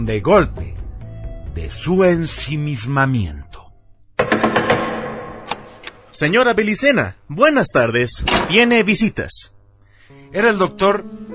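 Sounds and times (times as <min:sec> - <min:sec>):
speech: 0:00.0 - 0:00.8, 0:01.6 - 0:03.6, 0:06.2 - 0:09.6, 0:10.3 - 0:11.3
knocks on a heavy door: 0:04.2 - 0:05.7.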